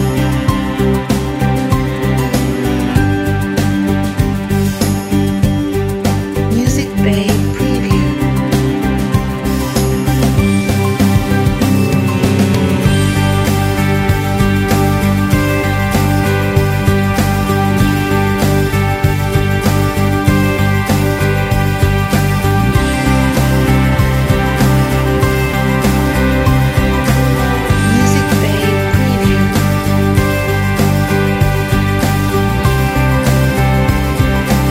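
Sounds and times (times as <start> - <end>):
inspirational acoustic background music: 0.0 - 34.7.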